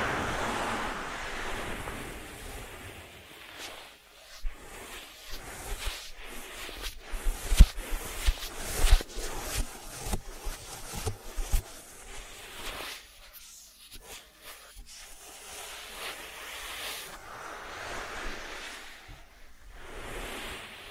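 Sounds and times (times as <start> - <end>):
ASMR ear treatment hissing rustles and crinkly brushing: 0.0 - 20.9.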